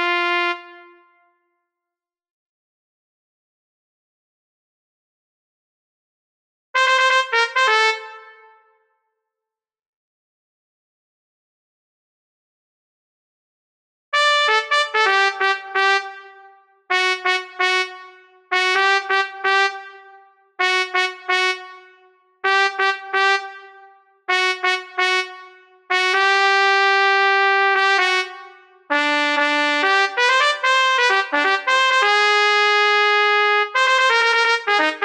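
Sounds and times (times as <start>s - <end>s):
trumpet in Bb: 0.0s - 1.4s, 6.8s - 8.8s, 14.2s - 35.0s.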